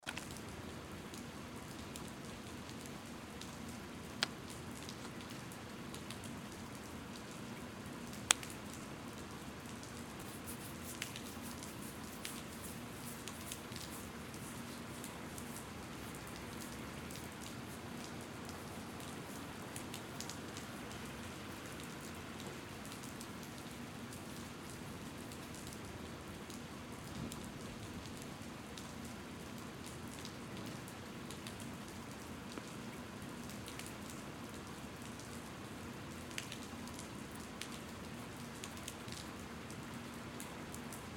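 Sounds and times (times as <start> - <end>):
heavy rain: 0.3 - 41.1
ear cleaning: 10.2 - 16.8.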